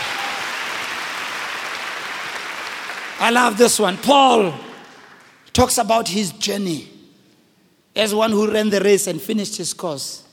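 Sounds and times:
audience clapping: 0:00.0 - 0:05.5
speech: 0:03.2 - 0:04.7, 0:05.6 - 0:06.9, 0:08.0 - 0:10.3.

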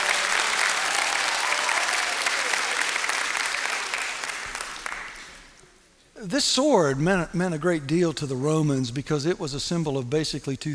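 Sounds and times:
audience applause: 0:00.0 - 0:05.6
speech: 0:06.2 - 0:10.7.

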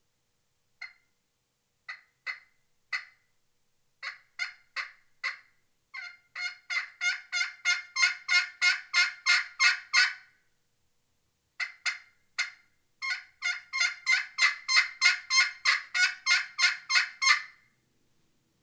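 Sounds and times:
Pollard's Elite aluminum pot turkey call played with a Diamondwood striker: 0:01.9 - 0:03.2, 0:04.0 - 0:10.3, 0:11.6 - 0:17.7.

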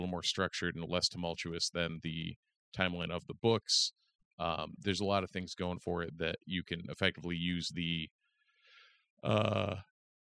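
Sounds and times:
speech: 0:00.0 - 0:08.2, 0:09.2 - 0:09.9
man yawning: 0:09.2 - 0:09.8.

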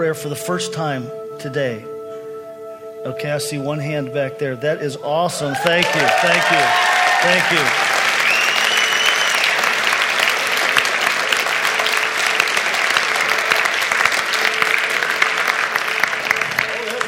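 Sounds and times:
speech: 0:00.0 - 0:02.0, 0:03.0 - 0:07.9
audience clapping: 0:05.5 - 0:17.0.

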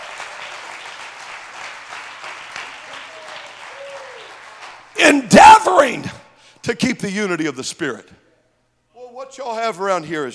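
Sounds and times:
audience clapping hands: 0:00.0 - 0:05.9
speech: 0:05.0 - 0:08.2, 0:09.3 - 0:10.3.

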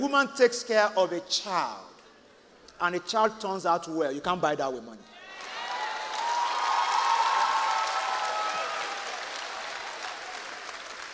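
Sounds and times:
speech: 0:00.0 - 0:01.9, 0:02.8 - 0:05.1
audience applause: 0:05.3 - 0:11.1.

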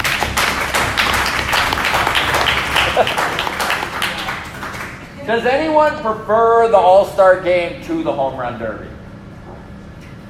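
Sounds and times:
live audience applause: 0:00.0 - 0:05.1
speech: 0:05.3 - 0:09.0.

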